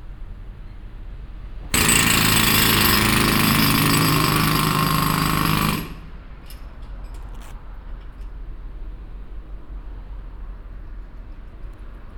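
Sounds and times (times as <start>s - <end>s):
pneumatic drill: 1.7s - 6.6s.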